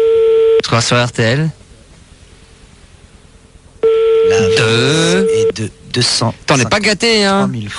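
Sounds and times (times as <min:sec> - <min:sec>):
telephone ringing on a prank call: 0:00.0 - 0:00.6, 0:03.8 - 0:05.6
speech: 0:00.7 - 0:01.6, 0:04.5 - 0:07.7.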